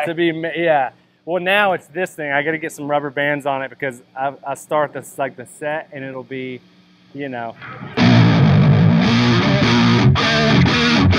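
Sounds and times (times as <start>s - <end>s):
speech: 0.0s - 8.1s
electric guitar through a cocked wah pedal: 7.6s - 11.1s.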